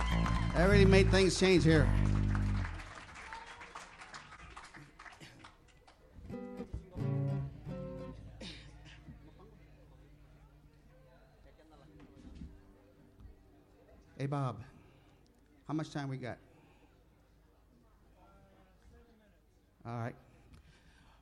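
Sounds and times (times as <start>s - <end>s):
shouts and whoops: 0.0s - 0.9s
audience applause: 0.0s - 6.5s
speech: 0.6s - 2.1s, 15.7s - 16.5s, 19.9s - 20.2s.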